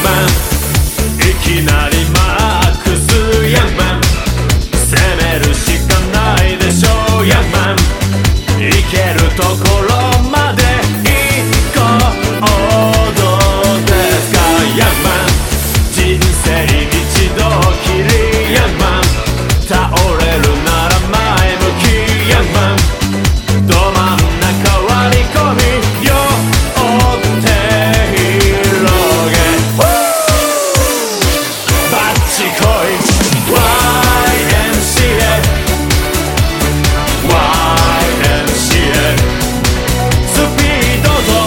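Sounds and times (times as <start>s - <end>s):
men singing: 0.0s - 23.0s, 23.6s - 36.3s, 36.9s - 41.4s.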